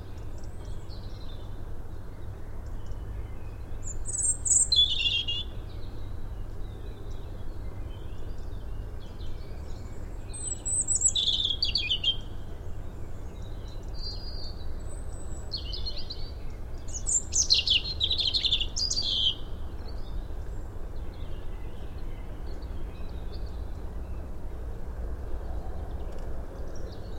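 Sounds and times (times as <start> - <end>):
low background noise: 0.0 - 27.1
European robin song: 2.6 - 24.4.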